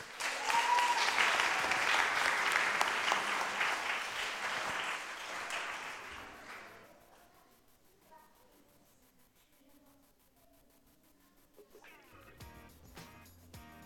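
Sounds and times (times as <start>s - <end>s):
audience applause: 0.0s - 7.0s.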